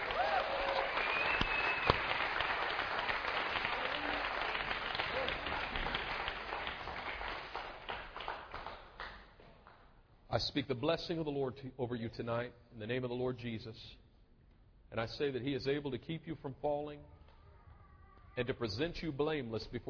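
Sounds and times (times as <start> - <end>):
audience applause: 0.0 - 9.2
speech: 10.4 - 14.0, 14.9 - 17.2, 18.4 - 19.8.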